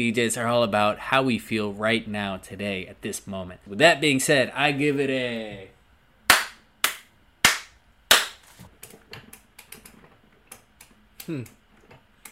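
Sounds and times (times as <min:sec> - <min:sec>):
speech: 0:00.0 - 0:05.7, 0:11.3 - 0:11.6
hand slaps: 0:06.3 - 0:08.5.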